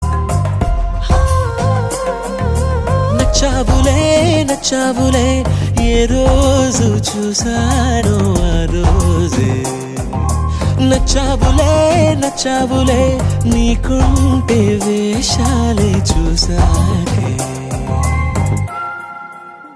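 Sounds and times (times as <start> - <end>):
background music ringtone: 0.0 - 19.7.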